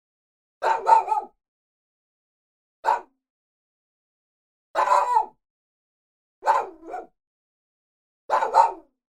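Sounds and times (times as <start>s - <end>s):
dog barking: 0.6s - 1.4s, 2.8s - 3.2s, 4.8s - 5.4s, 6.4s - 7.2s, 8.3s - 9.0s.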